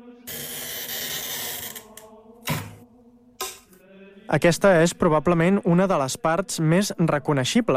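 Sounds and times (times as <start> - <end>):
glass cutter scoring glass: 0.3 - 2.0
speech: 4.3 - 7.7.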